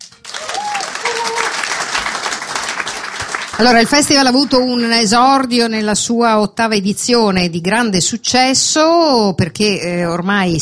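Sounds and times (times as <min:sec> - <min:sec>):
audience applause: 0:00.0 - 0:04.8
speech: 0:03.6 - 0:10.6.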